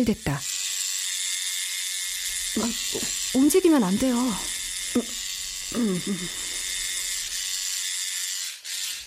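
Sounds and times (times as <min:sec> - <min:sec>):
speech: 0:00.0 - 0:00.5, 0:02.6 - 0:06.5
tattoo coil machine buzzing: 0:00.0 - 0:09.0
short vocal murmurs: 0:04.4 - 0:06.7.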